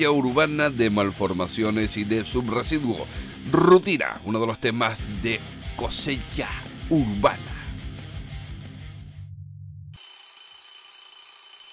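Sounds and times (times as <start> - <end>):
speech: 0.0 - 7.5
alarm clock ringing: 10.0 - 11.7.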